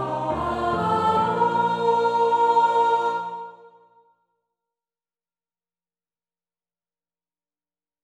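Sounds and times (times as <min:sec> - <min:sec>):
soprano singing: 0:00.0 - 0:04.0.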